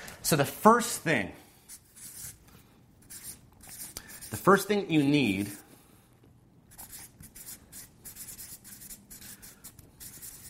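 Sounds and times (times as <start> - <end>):
speech: 0.3 - 1.4, 4.4 - 5.6
pen writing out steps by hand: 1.7 - 2.4, 3.0 - 5.6, 6.7 - 10.4.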